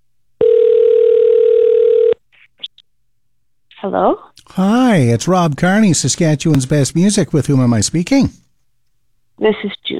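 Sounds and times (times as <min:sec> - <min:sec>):
telephone dial tone: 0:00.4 - 0:02.2
speech: 0:03.8 - 0:08.4, 0:09.4 - 0:09.9.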